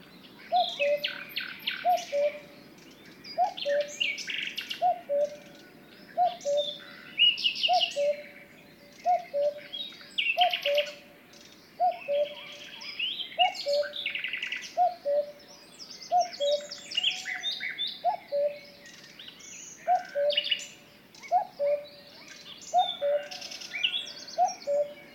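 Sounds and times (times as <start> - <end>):
songbirds chirping and twittering: 0.0 - 25.1
cuckoo calling: 0.5 - 2.6, 3.4 - 11.1, 11.8 - 19.0, 19.7 - 25.1.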